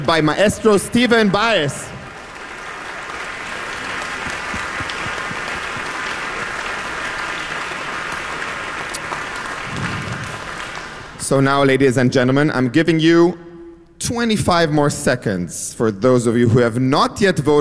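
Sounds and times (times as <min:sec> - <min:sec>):
speech: 0:00.0 - 0:01.9, 0:11.3 - 0:13.4, 0:14.0 - 0:17.5
audience applause: 0:00.0 - 0:11.2.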